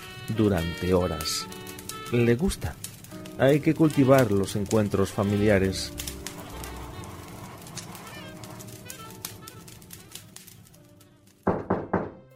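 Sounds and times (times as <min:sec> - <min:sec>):
low steady noise with faint crackles: 0:00.0 - 0:11.5
speech: 0:00.3 - 0:02.8, 0:03.4 - 0:06.0
sharp loud knocking on a door: 0:11.5 - 0:12.3.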